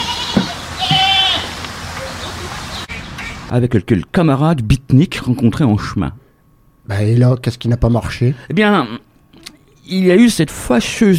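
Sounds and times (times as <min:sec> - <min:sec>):
goat raised in the Alps bleating: 0:00.0 - 0:01.6
low hum: 0:00.0 - 0:11.1
speech: 0:03.5 - 0:06.2, 0:06.9 - 0:09.1, 0:09.9 - 0:11.1.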